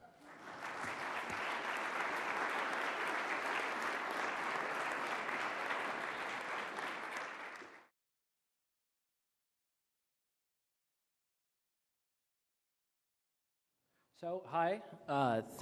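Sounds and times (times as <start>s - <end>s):
audience clapping: 0.0s - 7.9s
speech: 14.2s - 15.6s.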